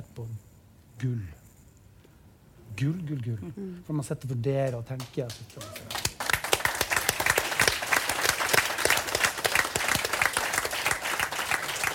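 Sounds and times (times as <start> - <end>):
speech: 0.2 - 1.4, 2.8 - 6.1
audience applause: 5.6 - 11.9.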